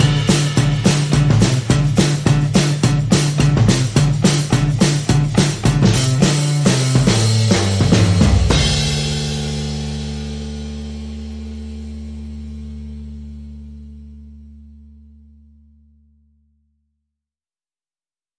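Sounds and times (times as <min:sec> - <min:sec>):
drums: 0:00.0 - 0:14.2
bass: 0:00.0 - 0:16.8.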